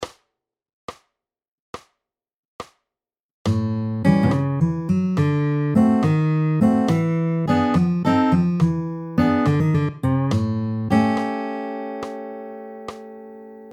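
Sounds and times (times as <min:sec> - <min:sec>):
walking blues turnaround in A: 0:03.5 - 0:11.4.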